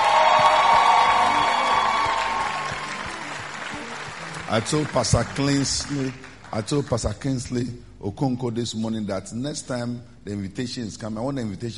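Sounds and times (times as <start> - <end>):
audience clapping and cheering: 0.0 - 7.1
speech: 4.5 - 11.7.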